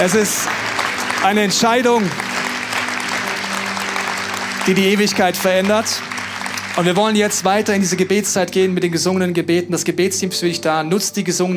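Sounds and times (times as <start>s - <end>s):
speech: 0.0s - 2.3s, 4.7s - 6.1s, 6.8s - 11.5s
crowd applauding: 0.0s - 8.6s.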